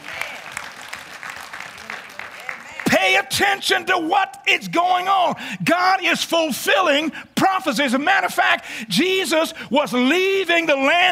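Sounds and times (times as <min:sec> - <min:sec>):
church congregation hand claps during a sermon: 0:00.0 - 0:03.0
speech: 0:03.2 - 0:11.0.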